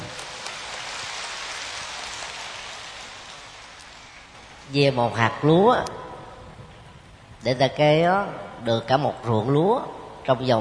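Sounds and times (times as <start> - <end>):
applause: 0.0 - 4.7
speech: 4.7 - 6.0, 7.4 - 10.5.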